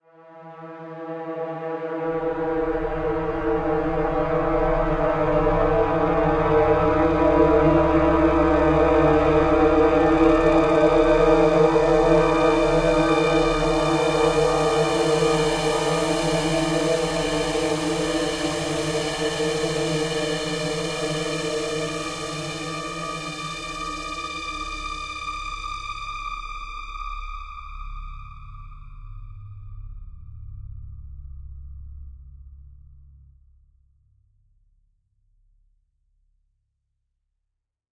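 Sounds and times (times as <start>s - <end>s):
ambient brass: 0.1s - 28.4s.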